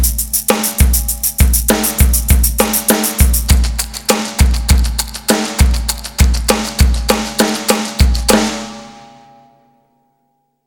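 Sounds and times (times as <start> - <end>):
shakers: 0.0 - 8.3.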